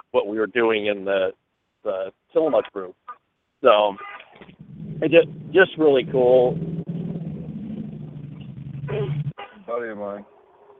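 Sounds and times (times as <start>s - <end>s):
speech: 0.1s - 6.7s, 9.8s - 10.4s
motorcycle starting up in nearby traffic: 3.7s - 10.7s.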